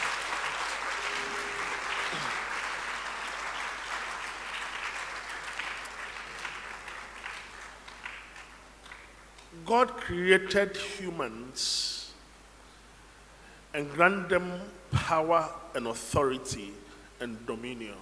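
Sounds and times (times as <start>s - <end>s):
audience clapping: 0.0s - 9.6s
brief tonal note: 0.8s - 2.8s
speech: 9.7s - 12.0s, 13.8s - 17.9s.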